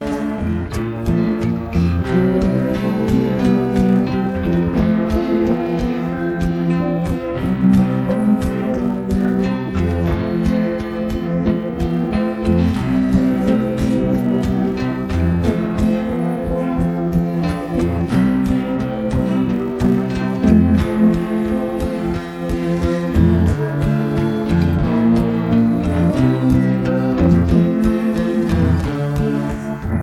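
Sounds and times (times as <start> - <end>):
instrumental music: 0.0 - 30.0.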